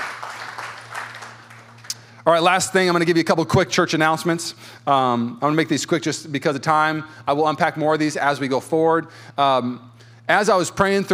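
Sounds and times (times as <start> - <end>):
audience clapping: 0.0 - 2.2
low electrical hum: 0.0 - 11.1
speech: 2.3 - 11.1.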